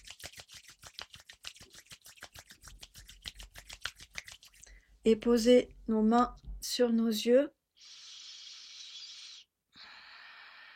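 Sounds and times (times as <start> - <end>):
hands rubbing briskly against each other: 0.0 - 4.7
speech: 5.0 - 7.6.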